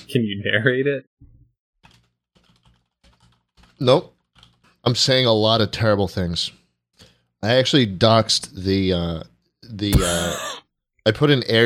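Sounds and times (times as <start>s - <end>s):
speech: 0.1s - 1.3s, 3.8s - 4.2s, 4.8s - 6.6s, 7.4s - 11.6s
keyboard typing while writing an email: 1.8s - 4.8s.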